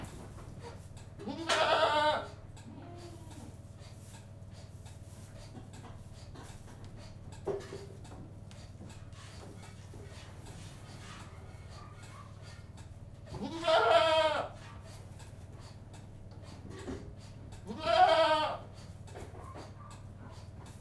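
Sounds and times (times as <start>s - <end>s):
goat bleating inside a goat house: 1.3s - 3.5s, 13.3s - 14.6s, 17.7s - 18.7s.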